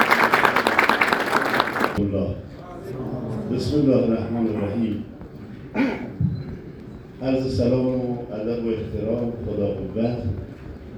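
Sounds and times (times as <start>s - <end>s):
audience applause: 0.0s - 2.0s
speech: 2.0s - 6.4s, 7.2s - 10.5s.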